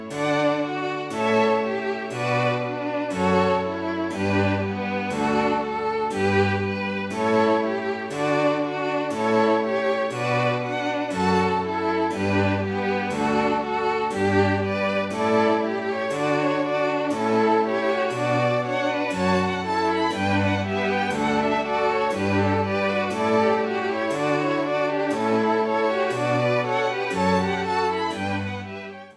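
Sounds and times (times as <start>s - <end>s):
choral canon with all voices: 0.4s - 28.8s.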